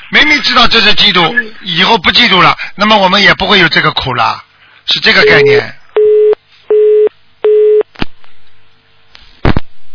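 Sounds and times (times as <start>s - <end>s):
speech: 0.1s - 5.8s
telephone busy tone beeps: 5.2s - 7.8s.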